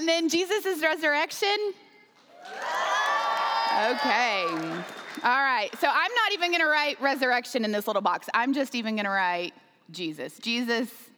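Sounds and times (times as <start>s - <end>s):
speech: 0.1s - 3.0s, 3.8s - 11.1s
high shouts: 2.4s - 5.3s
audience cheering for a vote: 2.4s - 5.7s.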